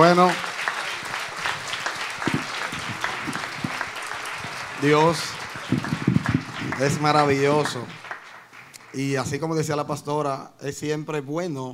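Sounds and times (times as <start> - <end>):
speech: 0.0 - 0.5, 4.8 - 5.9, 6.8 - 8.0, 9.0 - 11.7
audience applause: 0.0 - 9.3.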